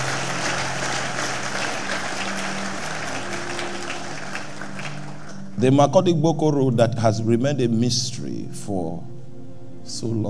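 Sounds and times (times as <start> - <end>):
audience clapping: 0.0 - 5.6
speech: 5.6 - 9.1, 9.9 - 10.2.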